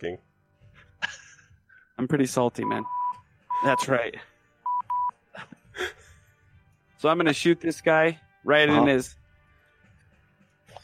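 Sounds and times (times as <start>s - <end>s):
speech: 0.0s - 0.3s, 2.0s - 3.0s, 3.6s - 4.3s, 7.0s - 9.2s
electronic button beeping: 2.6s - 3.9s, 4.7s - 5.1s.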